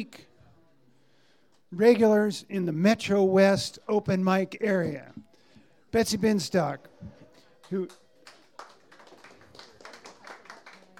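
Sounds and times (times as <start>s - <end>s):
speech: 0.0s - 0.3s, 1.7s - 5.2s, 5.9s - 8.0s
crowd applauding: 7.6s - 10.9s.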